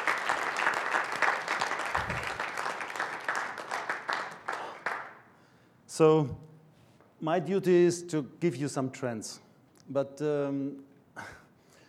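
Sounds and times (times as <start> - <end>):
warm audience applause: 0.0 - 5.2
speech: 6.0 - 6.4, 7.2 - 11.3.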